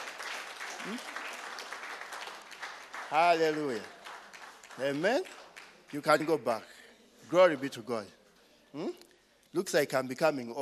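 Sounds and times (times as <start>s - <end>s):
audience clapping: 0.0s - 6.6s
speech: 0.8s - 1.2s, 3.1s - 4.0s, 4.8s - 6.7s, 7.3s - 10.6s.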